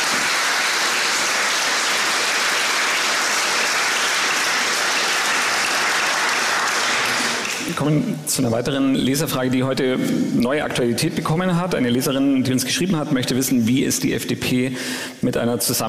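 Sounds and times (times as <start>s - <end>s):
applause: 0.0s - 7.8s
speech: 7.8s - 15.8s.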